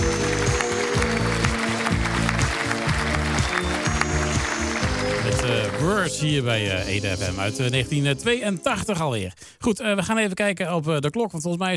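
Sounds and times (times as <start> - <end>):
applause: 0.0 - 6.4
speech: 5.8 - 11.7.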